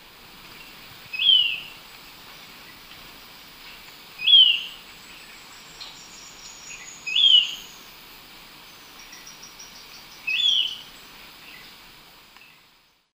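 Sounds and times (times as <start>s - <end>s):
insects buzzing: 0.0s - 13.1s
golden-faced tyrannulet call: 1.1s - 1.8s, 4.2s - 4.8s, 6.7s - 7.8s, 10.2s - 10.9s.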